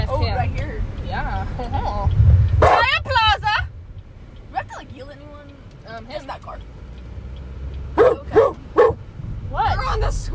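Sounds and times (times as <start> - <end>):
low steady rumble: 0.0 - 10.3
dog barking: 2.6 - 2.9, 8.0 - 9.0.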